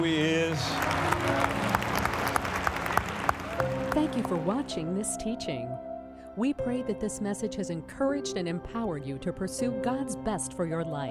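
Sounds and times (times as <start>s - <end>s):
speech: 0.0s - 1.4s, 4.0s - 11.1s
church congregation clapping in praise: 0.0s - 4.7s.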